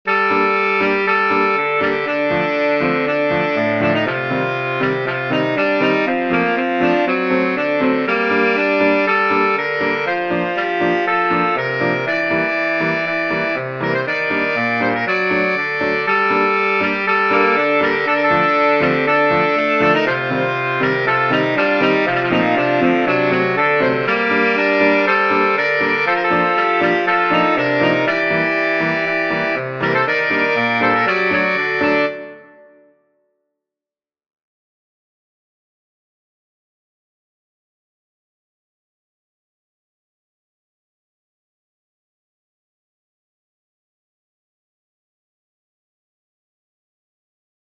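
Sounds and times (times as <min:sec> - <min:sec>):
saxophone: 0:00.1 - 0:33.0.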